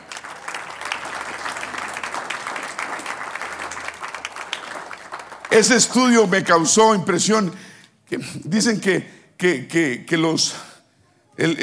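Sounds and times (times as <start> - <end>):
audience applause: 0.0 - 6.6
speech: 5.6 - 10.7, 11.4 - 11.6.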